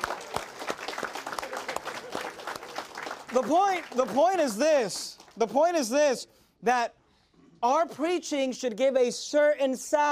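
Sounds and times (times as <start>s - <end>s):
audience applause: 0.0s - 5.4s
speech: 3.3s - 7.0s, 7.6s - 10.1s.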